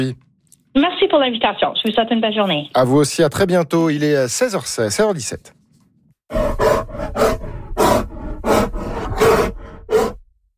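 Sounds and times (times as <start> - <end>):
speech: 0.0 - 5.6
grizzly bears roaring: 6.3 - 10.3.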